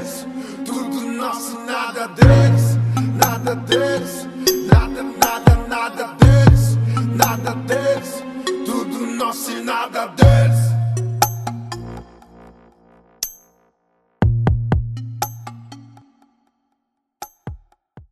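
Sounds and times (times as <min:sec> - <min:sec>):
bass: 0:02.2 - 0:04.6, 0:06.2 - 0:08.0, 0:10.2 - 0:12.8, 0:14.2 - 0:16.0.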